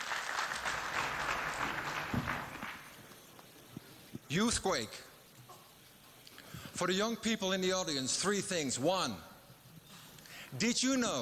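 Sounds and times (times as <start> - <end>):
audience clapping to welcome a speaker: 0.0 - 3.6
speech: 4.3 - 5.1, 6.8 - 9.3, 10.5 - 11.2.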